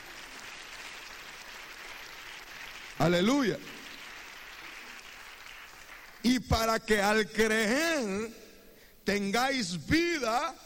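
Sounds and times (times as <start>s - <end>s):
audience clapping: 0.0s - 6.6s
speech: 3.0s - 3.8s, 6.2s - 8.4s, 9.1s - 10.6s.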